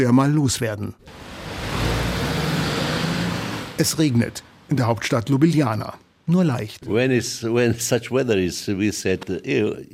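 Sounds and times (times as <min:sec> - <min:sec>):
speech: 0:00.0 - 0:01.4, 0:03.8 - 0:09.9
heavy gravel truck driving: 0:01.1 - 0:03.8
road noise: 0:01.1 - 0:04.7.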